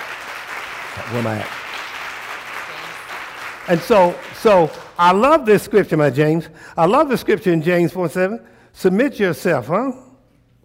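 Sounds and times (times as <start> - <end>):
audience applauding: 0.0 - 5.2
speech: 1.0 - 1.6, 3.7 - 10.1.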